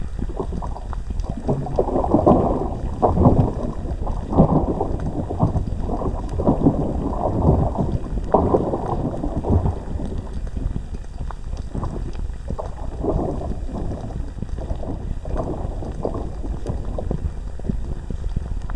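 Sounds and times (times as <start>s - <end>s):
lava pool: 0.2s - 18.6s.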